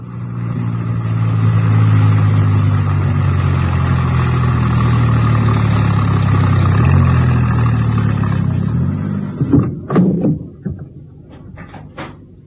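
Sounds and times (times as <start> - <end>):
van engine driving: 0.0 - 12.4
sharp clunks and thuds: 9.2 - 12.4.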